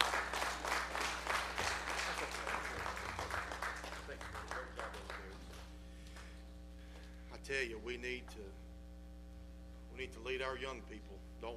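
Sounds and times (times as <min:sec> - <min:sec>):
audience applauding: 0:00.0 - 0:06.3
speech: 0:07.5 - 0:08.6, 0:10.0 - 0:11.5.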